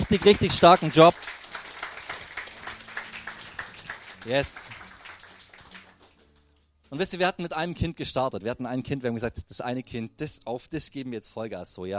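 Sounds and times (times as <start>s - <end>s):
crowd applause: 0.0s - 6.2s
speech: 0.1s - 1.4s, 4.2s - 4.8s, 6.9s - 11.9s.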